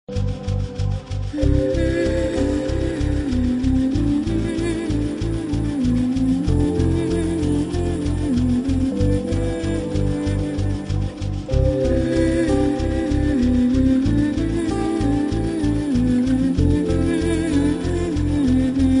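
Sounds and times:
raga music: 0.1 - 18.9.

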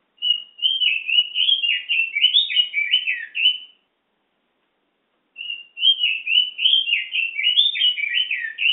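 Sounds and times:
Pekin robin singing: 0.2 - 3.9, 5.4 - 8.7.

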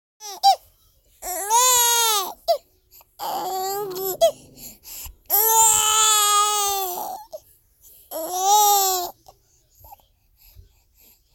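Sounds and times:
baby crying: 0.2 - 0.6, 1.2 - 2.6, 3.2 - 4.7, 5.3 - 7.4, 8.1 - 9.2.

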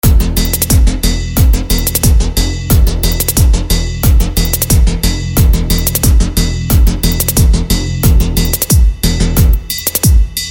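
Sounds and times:
looped bass beat: 0.0 - 10.4.

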